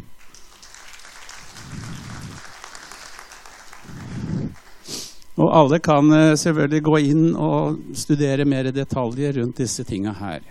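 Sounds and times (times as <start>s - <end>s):
audience applause: 0.2s - 4.9s
speech: 5.4s - 10.4s.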